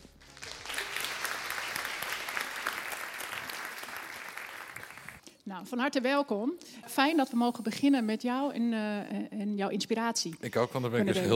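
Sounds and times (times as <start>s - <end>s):
audience applause: 0.0s - 5.2s
speech: 5.5s - 11.3s.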